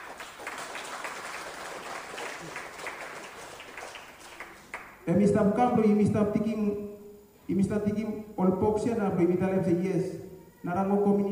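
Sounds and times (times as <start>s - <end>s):
audience clapping: 0.0s - 5.0s
speech: 5.0s - 6.9s, 7.5s - 11.3s.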